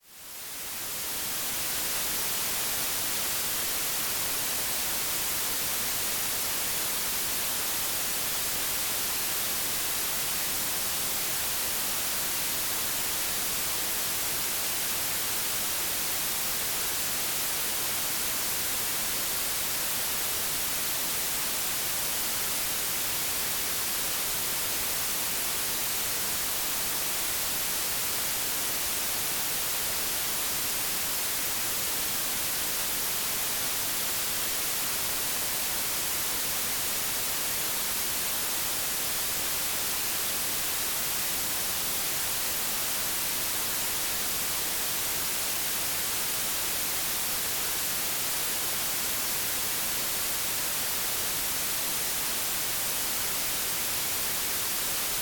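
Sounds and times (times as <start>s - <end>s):
white noise: 0.0s - 55.1s.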